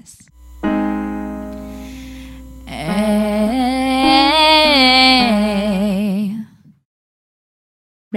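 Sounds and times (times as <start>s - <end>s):
vocal fry triad: 0.6s - 6.4s.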